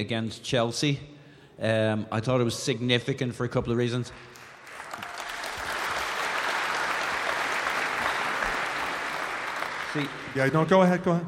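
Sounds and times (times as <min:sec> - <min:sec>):
speech: 0:00.0 - 0:04.4, 0:10.0 - 0:11.2
crowd applause: 0:04.3 - 0:11.1.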